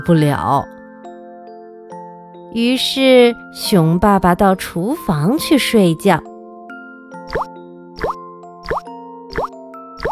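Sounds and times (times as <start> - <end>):
speech: 0.0 - 0.8, 2.5 - 6.3, 7.3 - 7.5
water dripping from a tap: 7.3 - 10.1.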